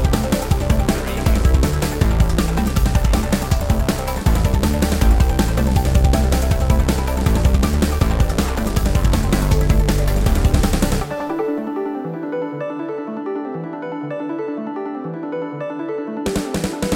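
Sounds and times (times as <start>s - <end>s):
synth music without lead synth: 0.0s - 16.9s.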